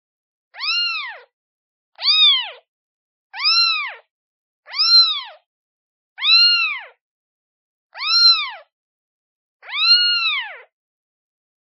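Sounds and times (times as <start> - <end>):
kitten meowing: 0.6 - 1.3, 2.0 - 2.7, 3.4 - 4.1, 4.7 - 5.5, 6.2 - 7.0, 7.9 - 8.7, 9.6 - 10.7.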